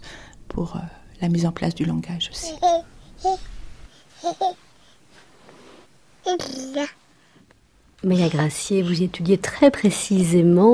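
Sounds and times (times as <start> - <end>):
speech: 0.6 - 3.5, 4.2 - 4.6, 6.3 - 7.0, 8.0 - 10.7
baby babbling and vocalizing: 2.4 - 3.5, 4.2 - 4.6, 6.2 - 7.0.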